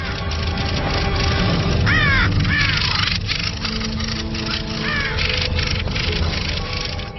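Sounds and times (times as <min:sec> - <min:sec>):
crows cawing harshly while attacking a black crow: 0:00.0 - 0:00.3, 0:01.7 - 0:07.0
noisy background: 0:00.0 - 0:07.1.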